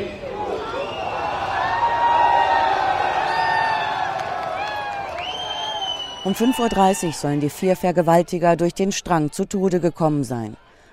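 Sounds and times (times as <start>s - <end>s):
crowd cheering: 0.0s - 8.2s
speech: 6.2s - 10.6s.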